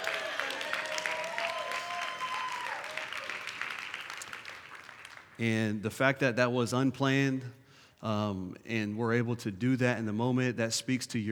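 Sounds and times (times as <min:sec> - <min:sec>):
crowd applauding: 0:00.0 - 0:05.4
speech: 0:05.4 - 0:11.3.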